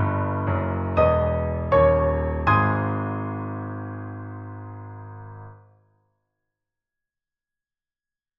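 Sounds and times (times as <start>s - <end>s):
piano accompaniment: 0.0s - 5.6s.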